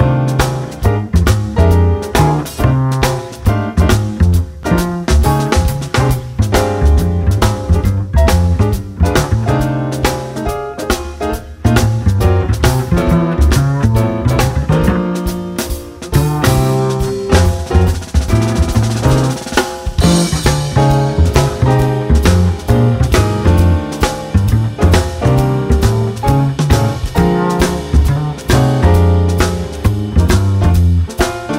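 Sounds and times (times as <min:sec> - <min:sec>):
bass solo: 0:00.0 - 0:31.5
jazz blues music: 0:00.0 - 0:31.5.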